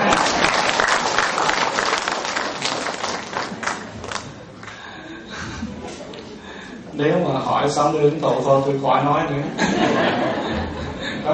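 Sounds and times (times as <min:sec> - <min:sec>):
laughter: 0:00.0 - 0:00.7, 0:09.4 - 0:11.3
people cheering: 0:00.0 - 0:03.9
audience applause: 0:00.0 - 0:04.8
speech: 0:07.0 - 0:11.3.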